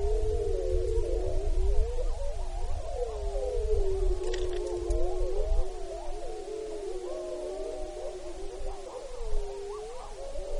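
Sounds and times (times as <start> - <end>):
wolves howling together in Wrangell-St. Elias, Alaska: 0.0 - 10.5.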